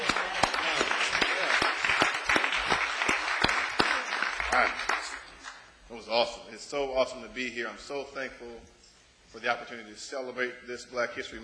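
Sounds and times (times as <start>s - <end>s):
audience clapping for the choir: 0.0s - 5.7s
speech: 6.1s - 11.4s.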